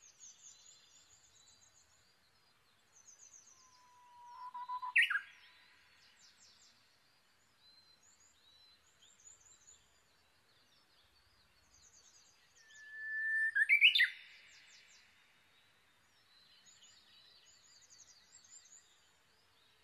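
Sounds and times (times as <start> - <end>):
Japanese bush warbler song, long whistle sliding into warbled flourish: 3.4 - 5.8, 12.5 - 15.0.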